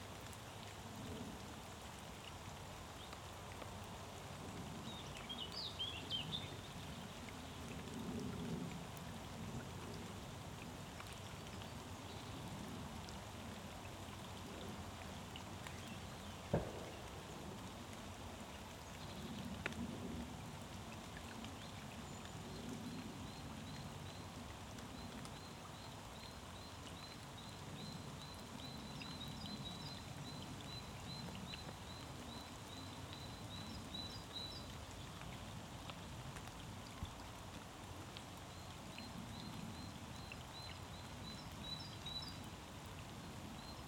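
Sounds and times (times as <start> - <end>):
light rain falling into a pond: 0.0 - 43.8.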